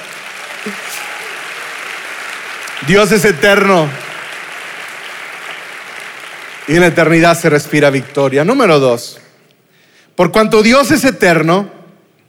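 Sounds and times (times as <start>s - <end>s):
audience applause: 0.0s - 8.8s
speech: 0.6s - 0.9s, 2.8s - 4.0s, 6.7s - 9.3s, 10.2s - 11.8s.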